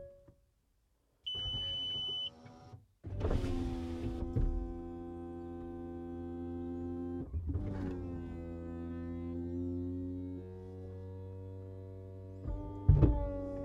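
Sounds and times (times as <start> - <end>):
car bleeps: 1.3 - 2.4
electronic car roof moving into boot: 1.3 - 13.6.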